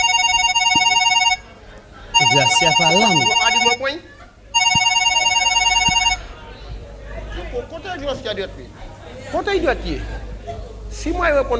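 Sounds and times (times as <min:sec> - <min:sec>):
telephone ringing with electronic trill: 0:00.0 - 0:01.5, 0:02.2 - 0:03.9, 0:04.6 - 0:06.3
speech: 0:02.3 - 0:04.2, 0:07.9 - 0:10.2, 0:11.0 - 0:11.5.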